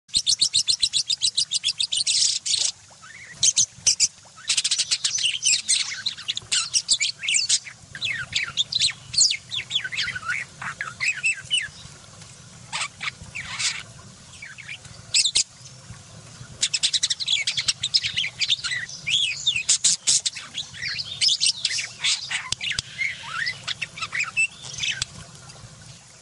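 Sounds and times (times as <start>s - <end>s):
budgerigar song: 0.1s - 11.9s, 12.7s - 15.5s, 16.6s - 25.1s.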